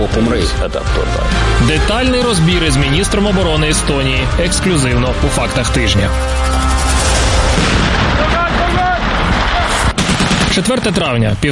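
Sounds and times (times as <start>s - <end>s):
speech: 0.0s - 6.7s, 10.6s - 11.5s
explosions from military exercises: 6.6s - 11.1s
gunshots from military exercises: 6.8s - 11.3s.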